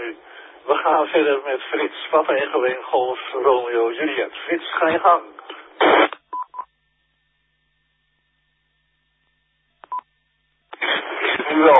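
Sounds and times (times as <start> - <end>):
radio static noise: 0.0 - 6.2, 10.7 - 11.7
speech: 0.8 - 6.0.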